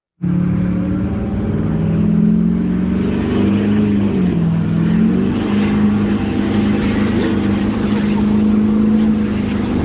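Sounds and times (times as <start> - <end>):
Duramax burnout: 0.2 - 9.8.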